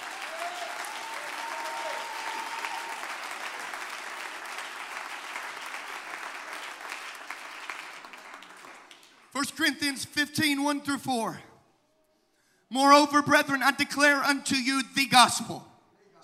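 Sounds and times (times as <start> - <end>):
audience clapping hands: 0.0 - 9.4
speech: 9.4 - 11.5, 12.7 - 15.7.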